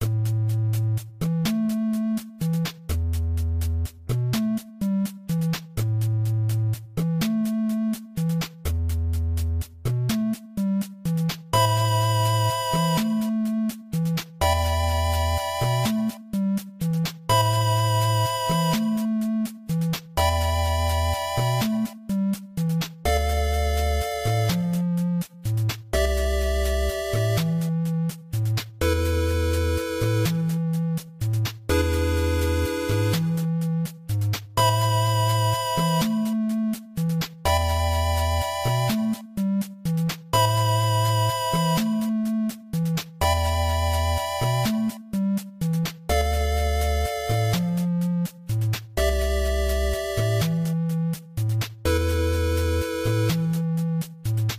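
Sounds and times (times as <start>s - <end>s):
music: 0.0s - 54.5s.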